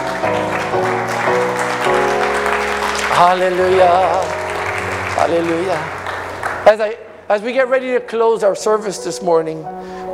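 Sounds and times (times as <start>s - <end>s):
audience hand clapping: 0.0s - 7.0s
sustained keyboard chords: 0.0s - 10.1s
speech: 3.2s - 4.4s, 5.2s - 6.0s, 6.6s - 10.1s.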